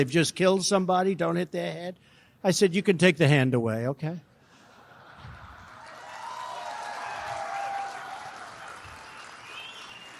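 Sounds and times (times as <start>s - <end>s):
speech: 0.0s - 4.3s
police officers applauding: 5.5s - 10.1s.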